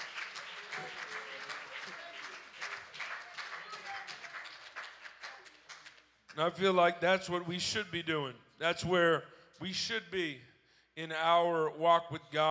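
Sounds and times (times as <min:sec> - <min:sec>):
audience clapping hands: 0:00.0 - 0:06.4
speech: 0:06.4 - 0:12.4.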